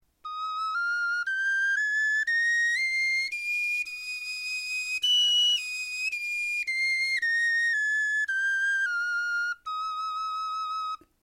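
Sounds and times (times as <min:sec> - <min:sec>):
bone flutes playing a scale: 0:00.2 - 0:11.1.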